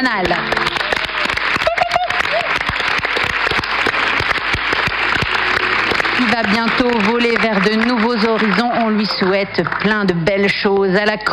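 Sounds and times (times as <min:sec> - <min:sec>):
speech: 0:00.0 - 0:00.6, 0:06.4 - 0:11.3
crowd applause: 0:00.0 - 0:10.5
whistle or cheer: 0:00.6 - 0:07.1
laughter: 0:00.6 - 0:09.4.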